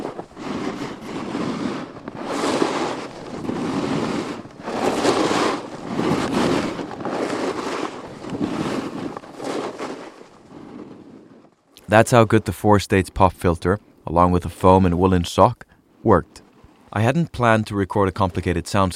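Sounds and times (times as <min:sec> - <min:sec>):
snowboard rushing down the mountain: 0:00.0 - 0:12.4
wind noise: 0:00.0 - 0:12.5
speech: 0:11.9 - 0:18.9.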